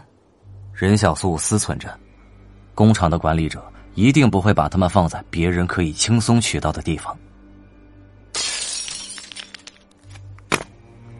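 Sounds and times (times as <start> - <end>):
speech: 0.8 - 2.1, 2.8 - 7.3
glass smashing: 8.3 - 10.6.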